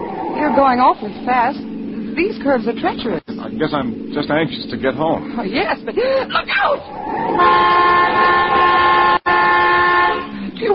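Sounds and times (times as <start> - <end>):
speech: 0.4 - 8.6, 10.6 - 10.7
car horn honking: 7.3 - 10.7.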